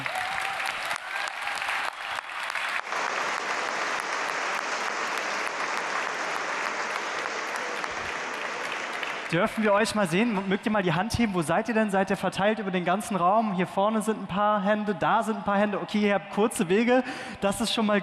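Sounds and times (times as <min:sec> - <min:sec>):
audience applause: 0:00.0 - 0:10.4
speech: 0:09.3 - 0:18.0.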